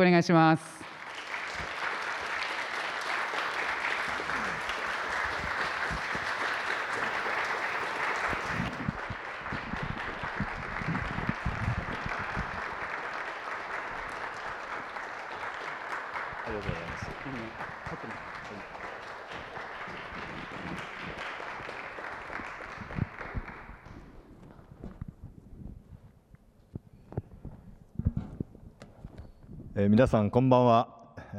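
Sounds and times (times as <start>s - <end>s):
speech: 0.0s - 0.8s, 30.0s - 31.3s
audience applause: 0.8s - 24.7s.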